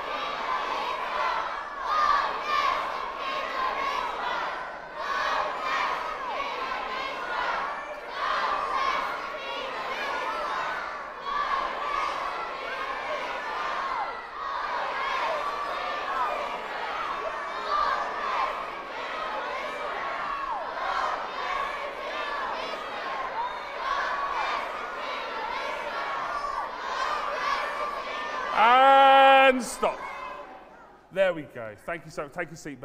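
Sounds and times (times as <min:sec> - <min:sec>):
large crowd chanting and shouting: 0:00.0 - 0:32.8
speech: 0:31.6 - 0:32.8.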